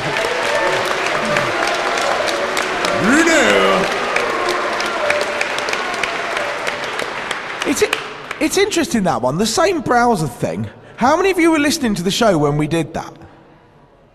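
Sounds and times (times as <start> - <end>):
audience applause: 0.0 - 8.8
speech: 8.4 - 13.2.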